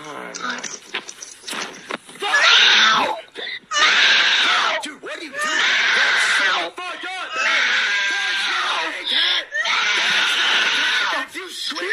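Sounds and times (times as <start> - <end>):
cat yowling into the microphone: 2.3 - 4.8, 5.4 - 6.6, 7.3 - 11.2.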